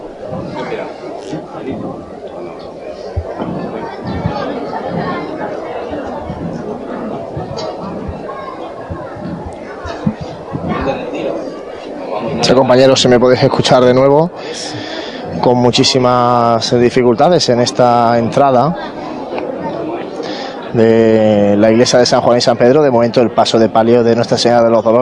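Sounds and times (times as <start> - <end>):
crowd ambience inside the church of San Juan: 0.0 - 24.9
speech: 12.6 - 14.8, 15.4 - 19.0, 20.7 - 24.9.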